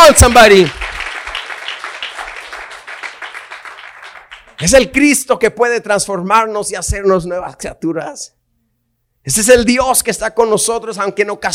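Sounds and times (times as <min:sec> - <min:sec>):
audience applause: 0:00.0 - 0:04.9
speech: 0:00.1 - 0:00.8, 0:04.6 - 0:08.4, 0:09.2 - 0:11.5.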